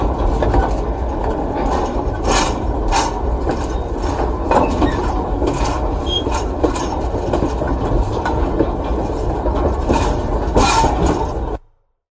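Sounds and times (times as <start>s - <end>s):
freight ambience: 0.0s - 11.6s.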